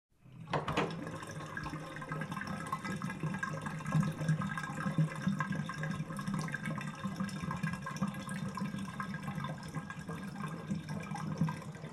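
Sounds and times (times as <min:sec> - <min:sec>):
water draining: 0:00.2 - 0:11.9.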